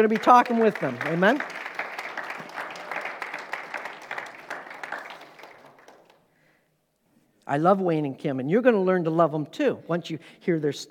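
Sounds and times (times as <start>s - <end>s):
speech: 0.0s - 1.6s, 7.5s - 10.8s
audience applause: 0.0s - 6.2s.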